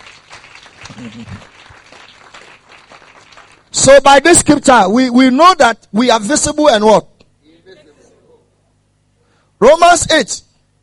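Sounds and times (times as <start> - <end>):
audience clapping: 0.0 - 3.9
speech: 0.9 - 1.6, 3.7 - 7.1, 9.6 - 10.5.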